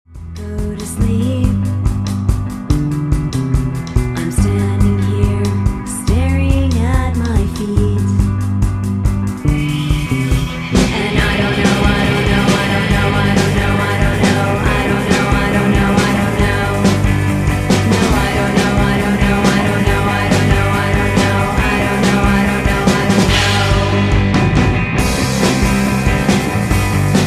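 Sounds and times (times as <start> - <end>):
drum: 0.1 - 27.2.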